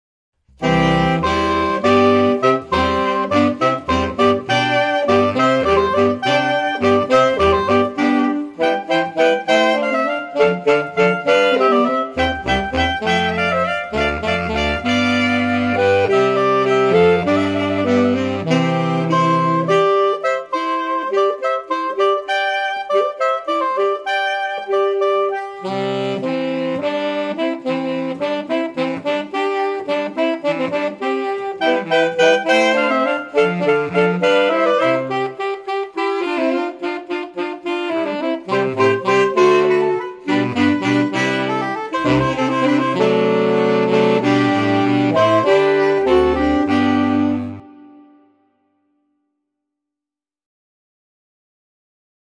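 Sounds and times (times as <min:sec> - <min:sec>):
music: 0:00.4 - 0:50.0.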